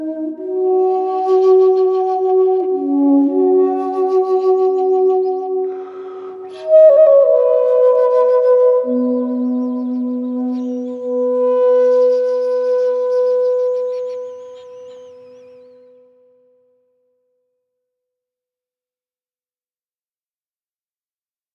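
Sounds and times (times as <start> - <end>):
Anasazi flute: 0.0 - 16.5.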